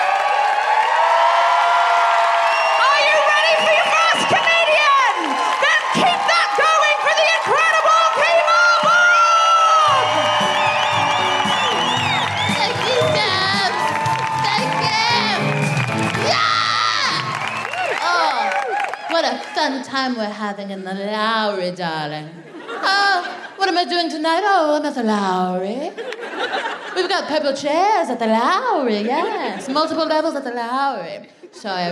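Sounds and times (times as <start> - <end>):
clapping: 0.0 - 19.6
live comedy show audience cheering at the Lowry in Salford: 0.0 - 19.9
people shouting: 2.8 - 18.6
speech: 20.0 - 31.9
laughter: 22.4 - 23.6, 25.9 - 27.1, 29.0 - 29.8.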